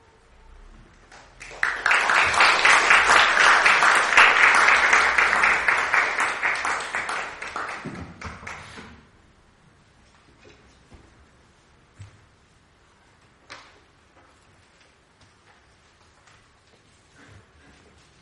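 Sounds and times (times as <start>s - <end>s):
audience applause welcoming a speaker: 1.1s - 8.8s.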